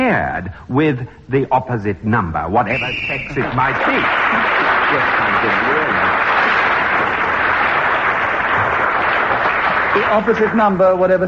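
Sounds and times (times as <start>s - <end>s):
speech: 0.2s - 6.3s, 10.0s - 11.2s
audience applause: 3.3s - 10.8s.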